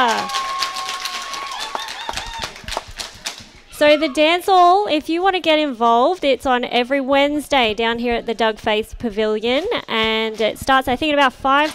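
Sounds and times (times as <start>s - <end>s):
dance hall crowd cheering: 0.0s - 4.3s
speech: 3.8s - 11.7s.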